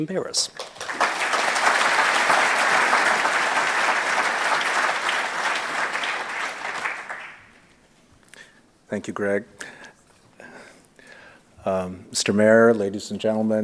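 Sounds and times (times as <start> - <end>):
speech: 0.0 - 1.0, 8.9 - 9.8, 11.6 - 13.6
audience applause: 0.6 - 7.6.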